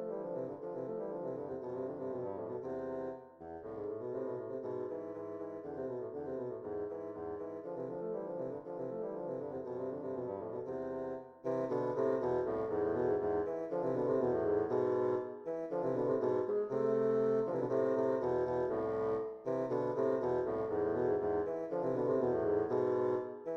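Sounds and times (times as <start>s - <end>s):
bassoon duet: 0.0s - 23.5s.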